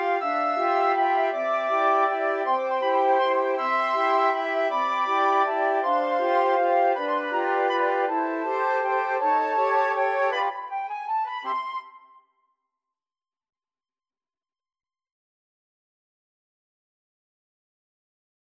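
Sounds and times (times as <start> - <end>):
flute choir: 0.0 - 12.2.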